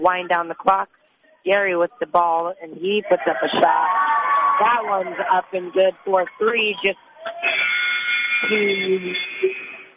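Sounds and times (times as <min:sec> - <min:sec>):
speech: 0:00.0 - 0:04.0, 0:04.6 - 0:07.5, 0:08.4 - 0:09.6
basketball game buzzer ending the first half: 0:07.4 - 0:09.9.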